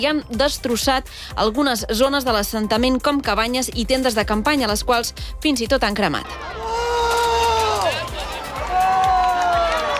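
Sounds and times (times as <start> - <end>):
speech: 0.0 - 6.8
protesters shouting: 6.2 - 9.9.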